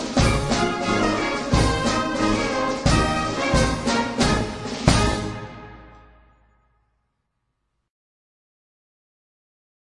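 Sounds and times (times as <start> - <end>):
carnival march: 0.0 - 6.6.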